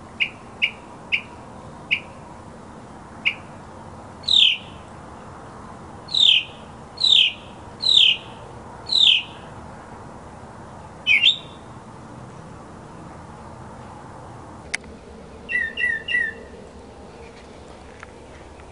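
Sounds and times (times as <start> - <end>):
mockingbird song: 4.2 - 4.8, 6.1 - 9.5, 11.1 - 11.7, 15.5 - 16.5.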